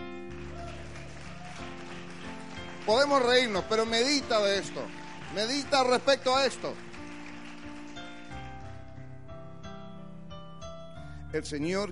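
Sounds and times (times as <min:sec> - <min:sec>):
audience applause: 0:00.2 - 0:08.9
speech: 0:02.9 - 0:06.9, 0:11.3 - 0:11.9.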